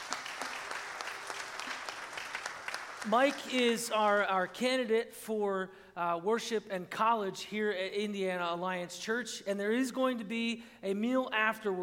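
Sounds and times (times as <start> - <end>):
audience clapping to welcome a guest: 0.0 - 4.4
speech: 3.0 - 11.8.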